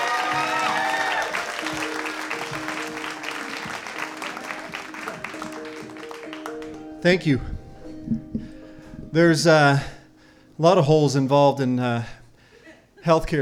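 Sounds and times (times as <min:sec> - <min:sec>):
audience applause: 0:00.0 - 0:07.0
speech: 0:07.0 - 0:08.2, 0:09.1 - 0:09.9, 0:10.6 - 0:12.2, 0:13.0 - 0:13.4.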